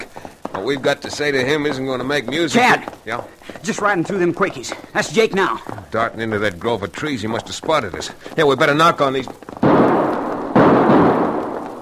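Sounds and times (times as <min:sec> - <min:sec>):
speech: 0:00.6 - 0:09.5
gunshots: 0:08.4 - 0:11.7.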